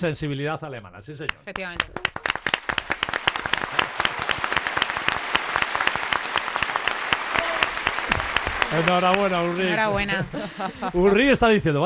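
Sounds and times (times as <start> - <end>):
speech: 0.0 - 2.2, 8.7 - 11.8
steady applause from a group: 1.3 - 11.1
laughter: 7.3 - 11.6.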